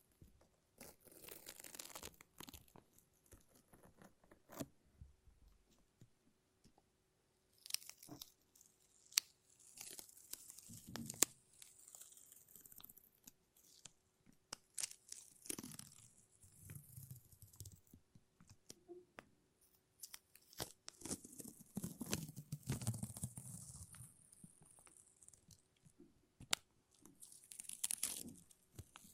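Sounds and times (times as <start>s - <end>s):
crinkling: 0.0s - 4.8s, 7.5s - 29.1s
lint roller and tape peeling and tearing: 0.8s - 4.6s, 7.6s - 16.2s, 20.0s - 24.1s, 27.2s - 29.1s.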